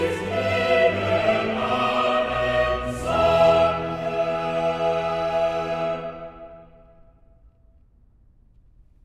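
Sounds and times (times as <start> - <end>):
choir singing: 0.0 - 7.0.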